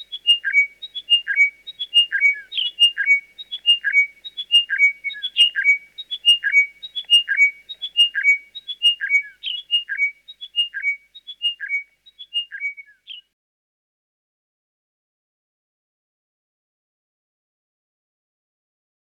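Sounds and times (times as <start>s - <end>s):
chiming wedgebill calling chiming whistles: 0.0s - 11.8s.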